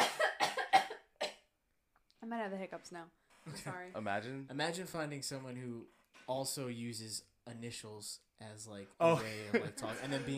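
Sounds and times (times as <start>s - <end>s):
person coughing after choking on a drink: 0.0s - 1.4s
speech: 2.4s - 10.3s.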